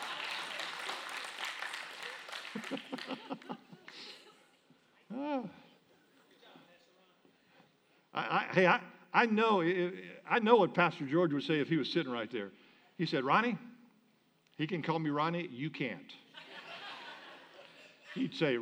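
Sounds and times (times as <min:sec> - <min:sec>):
audience clapping: 0:00.0 - 0:04.4
laughter: 0:00.0 - 0:05.5, 0:16.2 - 0:18.5
speech: 0:08.6 - 0:13.7, 0:14.6 - 0:16.2, 0:18.1 - 0:18.5.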